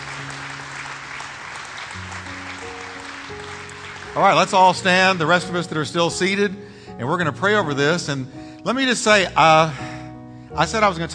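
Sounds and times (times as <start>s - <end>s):
audience applause: 0.0s - 5.2s
speech: 4.2s - 9.9s, 10.5s - 11.1s.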